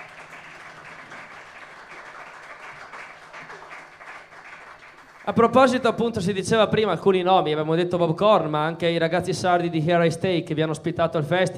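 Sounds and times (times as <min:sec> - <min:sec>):
audience applause for a band: 0:00.0 - 0:05.8
speech: 0:05.3 - 0:11.5.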